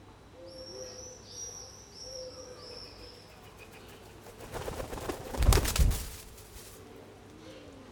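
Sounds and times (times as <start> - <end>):
pigeon wings flapping: 3.5 - 6.9.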